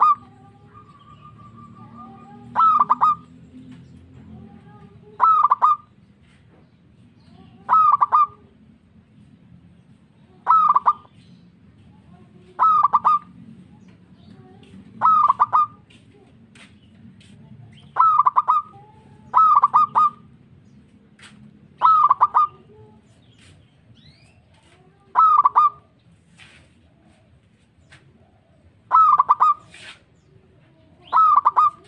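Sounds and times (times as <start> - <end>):
zebra dove cooing: 0.0 - 3.4, 4.4 - 5.9, 7.5 - 8.5, 10.4 - 11.1, 12.4 - 13.4, 14.4 - 16.0, 17.8 - 20.3, 21.7 - 23.0, 25.1 - 25.9, 28.1 - 31.8.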